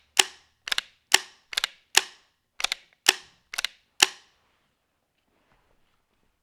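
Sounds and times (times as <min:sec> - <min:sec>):
VM-68 long barrel gun being cocked: 0:00.2 - 0:04.2.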